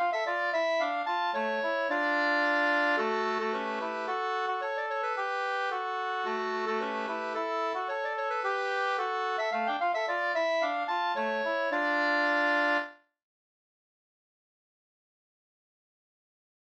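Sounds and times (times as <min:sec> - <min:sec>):
polska dance tune: 0:00.0 - 0:12.9.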